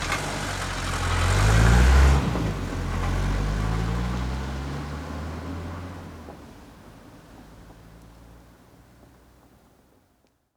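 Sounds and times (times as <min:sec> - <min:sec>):
Mercedes 300 D arriving, idling and driving off: 0:00.0 - 0:06.9.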